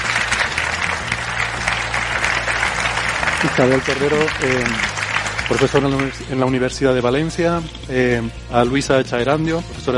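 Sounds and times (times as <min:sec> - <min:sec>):
audience applause: 0:00.0 - 0:06.4
speech: 0:03.4 - 0:04.9, 0:05.5 - 0:09.9.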